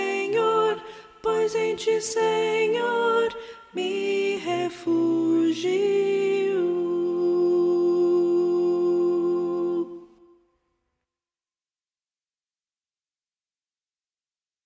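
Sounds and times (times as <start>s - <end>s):
soprano singing: 0.0s - 10.4s.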